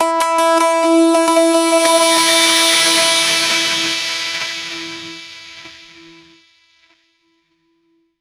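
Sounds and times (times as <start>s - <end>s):
dreamy E minor chord: 0.4s - 6.2s.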